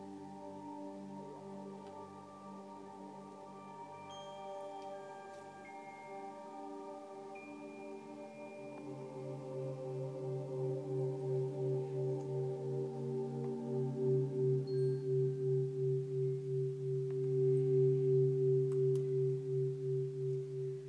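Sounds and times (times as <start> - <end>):
Cardiosmose heart-coherence tone: 8.8 - 20.8.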